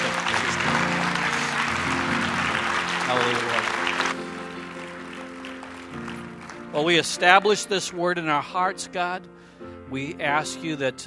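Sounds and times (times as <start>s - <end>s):
audience clapping: 0.0s - 7.6s
sustained keyboard chords: 0.0s - 11.0s
speech: 3.1s - 3.6s, 6.8s - 11.0s.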